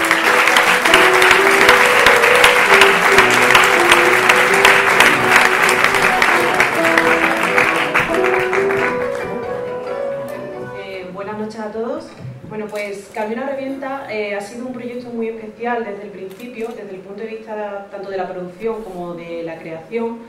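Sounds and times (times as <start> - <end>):
audience applause: 0.0 - 10.6
speech: 15.8 - 20.2.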